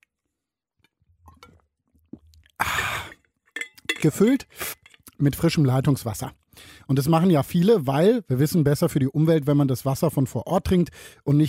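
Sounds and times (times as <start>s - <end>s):
stainless steel drinking bottle being handled: 3.0s - 5.1s
speech: 4.0s - 11.4s.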